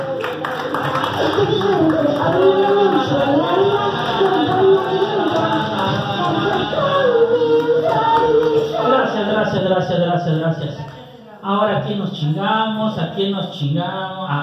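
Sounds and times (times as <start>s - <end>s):
audience applause: 0.0s - 9.0s
speech: 9.6s - 14.4s.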